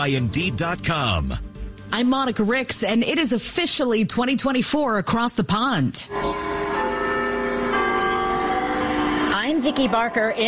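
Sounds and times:
speech: 0.0 - 6.6, 9.6 - 10.4
Big Ben clock tower bell chiming midnight: 6.1 - 10.4.

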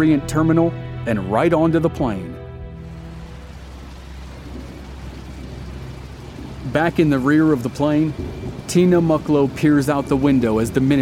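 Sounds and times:
speech: 0.0 - 2.4, 6.6 - 11.0
rain against windows: 2.8 - 11.0
distant thunder: 3.8 - 10.2.

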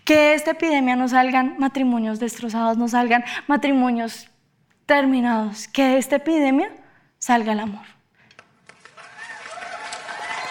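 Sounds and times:
speech: 0.1 - 4.3, 4.9 - 8.0
crowd applause: 8.7 - 10.4.

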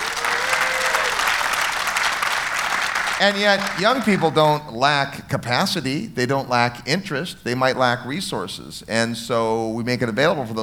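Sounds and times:
audience applause: 0.0 - 4.6
speech: 3.2 - 10.6.

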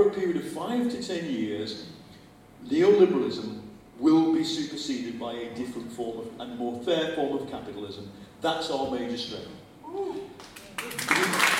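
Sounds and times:
speech: 0.0 - 2.0, 2.6 - 11.5
audience clapping: 10.4 - 11.5.

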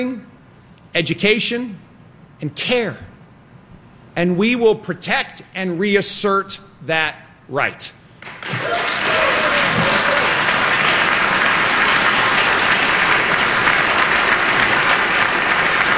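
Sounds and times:
speech: 1.0 - 1.8, 2.4 - 3.1, 4.2 - 8.0
applause from assembly: 8.2 - 15.9.

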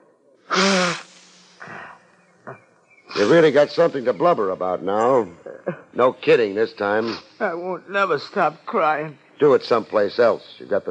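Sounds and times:
honking nose blow into a handkerchief: 0.5 - 2.0, 3.1 - 3.6, 7.0 - 7.4
speech: 3.2 - 10.9.

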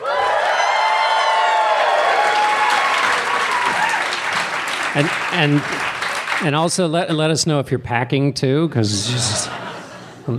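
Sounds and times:
live audience cheering and whooping: 0.0 - 4.8
live audience applauding: 0.0 - 6.6
speech: 5.0 - 9.6
laughter: 8.8 - 10.3.

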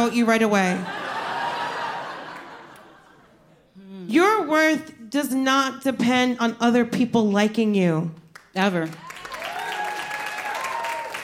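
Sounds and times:
speech: 0.0 - 1.0, 4.1 - 9.0
laughter: 0.8 - 3.7
audience clapping: 8.3 - 11.2.

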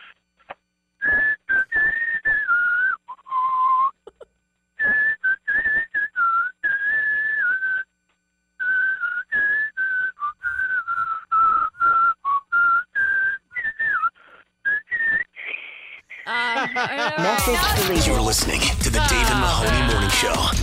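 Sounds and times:
person whistling a song: 1.0 - 4.0, 4.8 - 7.9, 8.6 - 15.4
laughter: 16.2 - 20.6
speech: 17.5 - 20.6.

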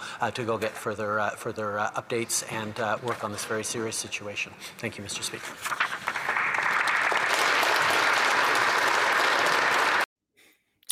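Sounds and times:
speech: 0.2 - 6.1
applause: 5.8 - 10.1.

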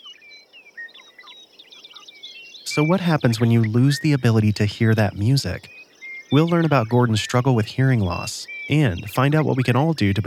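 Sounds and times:
birdsong: 0.0 - 10.2
speech: 2.8 - 10.2.

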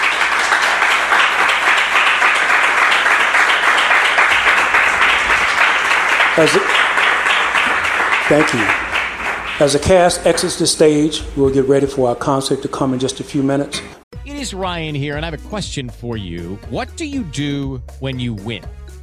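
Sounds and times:
audience applause for the cast: 0.0 - 11.0
speech: 6.4 - 6.8, 8.3 - 8.8, 9.6 - 19.0.

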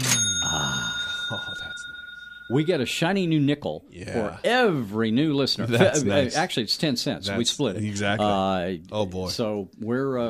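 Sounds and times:
cash register bell ding: 0.0 - 3.0
speech: 2.5 - 10.2.

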